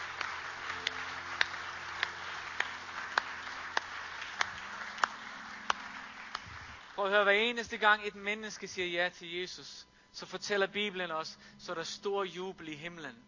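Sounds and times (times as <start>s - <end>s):
audience applause: 0.0s - 7.0s
speech: 7.0s - 13.2s.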